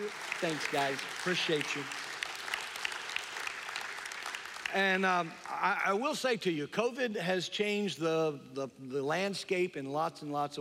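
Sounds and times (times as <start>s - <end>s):
speech: 0.0s - 2.0s, 4.7s - 10.5s
church congregation applauding to welcome a couple: 0.0s - 6.0s.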